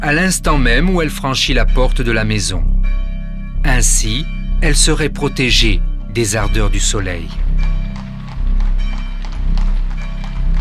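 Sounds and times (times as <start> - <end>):
speech: 0.0 - 2.8, 3.6 - 7.5
horse-drawn carriage on cobbled streets: 5.5 - 10.6.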